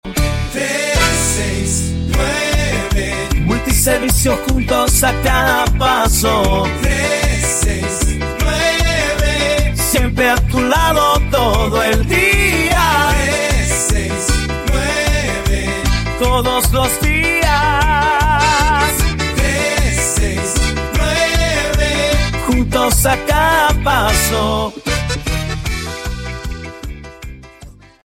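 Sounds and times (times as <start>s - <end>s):
jingle: 0.9s - 26.8s.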